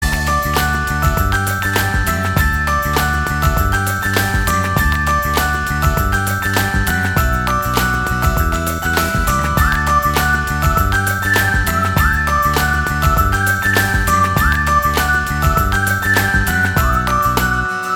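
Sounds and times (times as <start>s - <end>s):
bell ringing: 0.0s - 17.9s.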